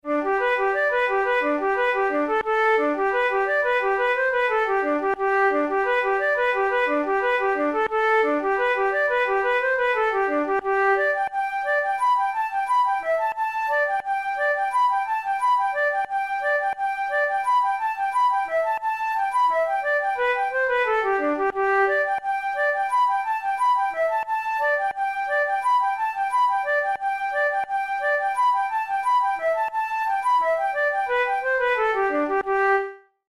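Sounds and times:
flute playing reel tunes: 0:00.1 - 0:33.0.

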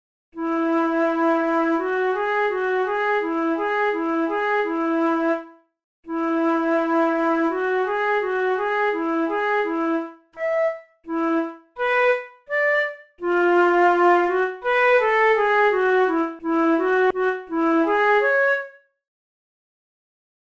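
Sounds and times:
flute playing a method exercise: 0:00.4 - 0:05.5, 0:06.1 - 0:18.8.

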